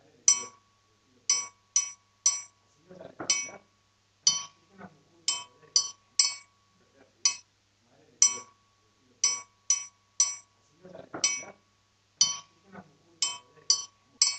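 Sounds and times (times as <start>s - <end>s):
batucada triangle: 0.2s - 2.6s, 3.2s - 3.6s, 4.2s - 7.5s, 8.2s - 10.6s, 11.2s - 11.6s, 12.2s - 14.3s.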